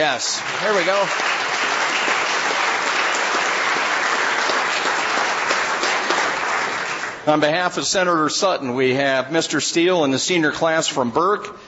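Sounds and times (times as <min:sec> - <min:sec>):
speech: 0:00.0 - 0:01.6, 0:07.2 - 0:11.6
audience applause: 0:00.0 - 0:07.2.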